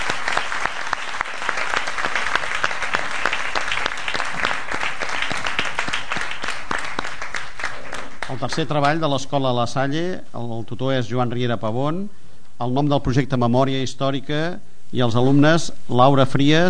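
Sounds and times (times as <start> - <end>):
audience applause: 0.0 - 8.7
speech: 8.4 - 16.6.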